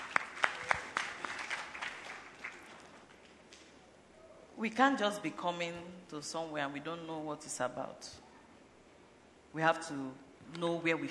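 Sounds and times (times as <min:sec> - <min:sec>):
audience clapping: 0:00.0 - 0:03.7
speech: 0:04.6 - 0:08.2, 0:09.5 - 0:11.0.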